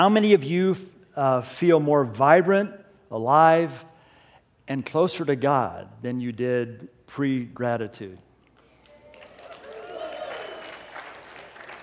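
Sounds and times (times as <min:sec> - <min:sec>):
speech: 0:00.0 - 0:03.9, 0:04.7 - 0:08.2
scattered audience clapping: 0:08.6 - 0:11.8.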